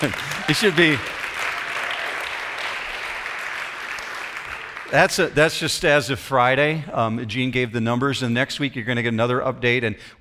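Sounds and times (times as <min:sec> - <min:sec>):
speech: 0:00.0 - 0:01.1, 0:04.9 - 0:10.1
crowd applause: 0:00.0 - 0:05.6.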